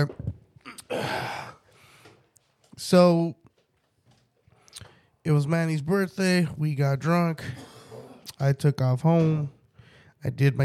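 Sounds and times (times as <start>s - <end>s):
person sneezing: 0.6s - 1.6s, 7.4s - 8.4s
speech: 2.8s - 3.4s, 5.2s - 7.7s, 8.3s - 9.6s, 10.2s - 10.6s.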